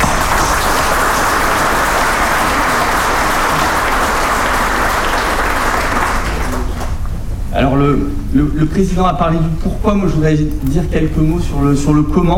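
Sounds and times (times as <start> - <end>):
audience applause: 0.0 - 7.2
speech: 7.6 - 12.3.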